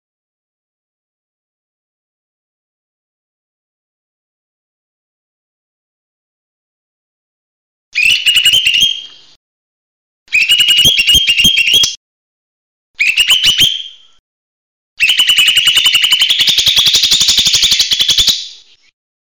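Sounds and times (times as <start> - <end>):
buzzy chattering bird song: 8.0 - 9.4, 10.4 - 12.0, 15.0 - 18.9.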